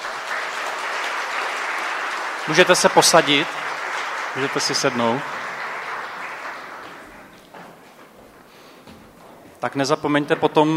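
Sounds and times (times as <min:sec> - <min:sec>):
audience applause: 0:00.0 - 0:07.8
speech: 0:02.4 - 0:03.6, 0:04.4 - 0:05.4, 0:09.6 - 0:10.7.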